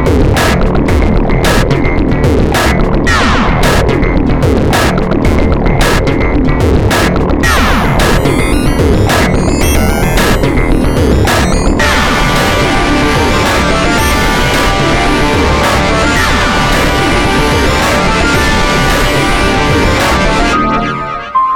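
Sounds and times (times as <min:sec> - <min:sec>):
industrial beat loop: 0:00.0 - 0:21.4.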